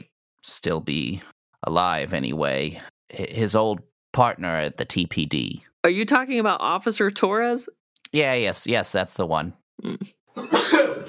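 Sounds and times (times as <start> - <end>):
speech: 0.4 - 11.0
sneeze: 10.4 - 11.0.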